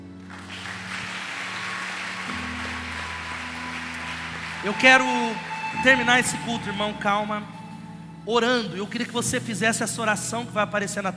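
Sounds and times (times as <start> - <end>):
audience applauding: 0.0 - 7.9
speech: 4.6 - 7.6, 8.2 - 11.1.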